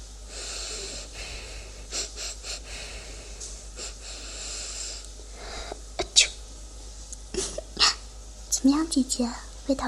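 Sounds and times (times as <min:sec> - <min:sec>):
person sniffing: 0:00.3 - 0:05.0
speech: 0:08.6 - 0:09.8.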